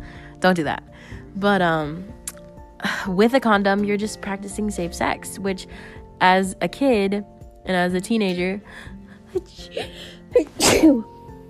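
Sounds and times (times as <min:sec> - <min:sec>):
speech: 0:00.4 - 0:02.2, 0:02.8 - 0:11.2
person sneezing: 0:10.4 - 0:11.1.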